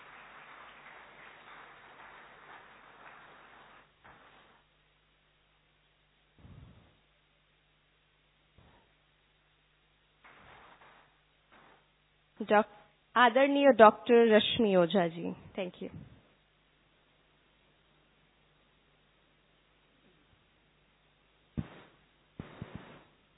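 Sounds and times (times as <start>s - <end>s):
audience clapping: 0.0s - 4.4s
speech: 12.4s - 16.1s.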